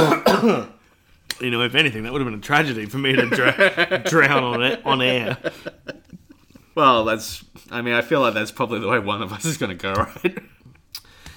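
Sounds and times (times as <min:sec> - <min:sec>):
sputtering cough after drink went down wrong way: 0:00.0 - 0:00.8
speech: 0:01.4 - 0:06.2, 0:06.8 - 0:10.6
laughter: 0:03.0 - 0:06.5.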